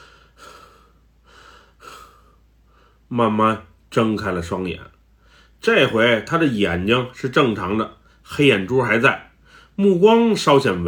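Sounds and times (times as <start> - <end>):
heavy ragged gasping breaths after coughing: 0.0 - 3.1
speech: 3.1 - 5.0, 5.6 - 10.8.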